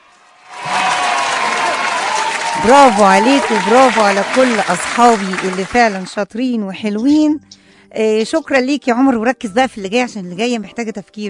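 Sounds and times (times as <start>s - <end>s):
audience clapping after a quiz answer: 0.2s - 6.2s
speech: 2.6s - 11.2s.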